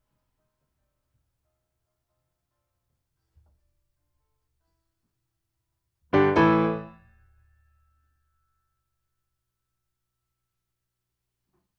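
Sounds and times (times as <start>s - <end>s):
piano: 6.1s - 7.2s.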